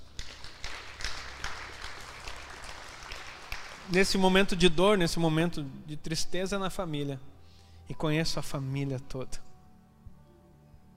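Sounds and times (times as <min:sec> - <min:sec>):
crowd applause with hands clapping: 0:00.0 - 0:04.6
speech: 0:03.9 - 0:07.3, 0:07.9 - 0:09.5.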